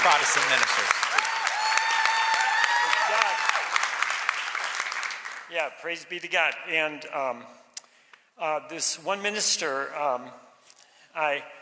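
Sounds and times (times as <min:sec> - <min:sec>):
speech: 0:00.0 - 0:01.4, 0:05.5 - 0:07.6, 0:08.4 - 0:10.5, 0:11.1 - 0:11.6
applause: 0:00.0 - 0:05.6.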